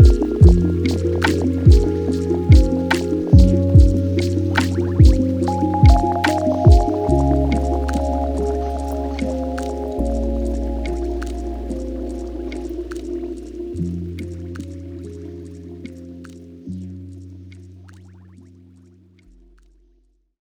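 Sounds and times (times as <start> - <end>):
lofi hip hop: 0.0 - 14.8.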